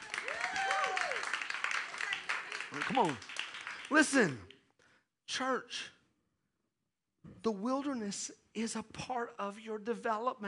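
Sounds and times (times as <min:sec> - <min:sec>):
clapping: 0:00.0 - 0:04.6
speech: 0:02.7 - 0:03.3, 0:03.9 - 0:04.5, 0:05.3 - 0:06.0, 0:07.4 - 0:10.4.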